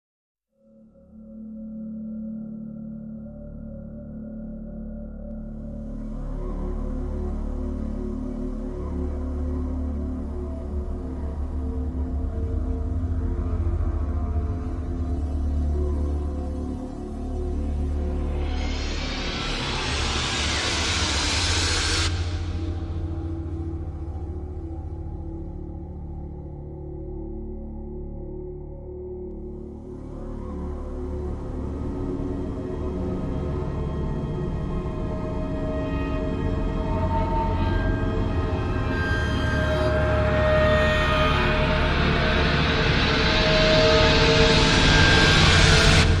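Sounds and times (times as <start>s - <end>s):
drones: 4.6s - 46.1s.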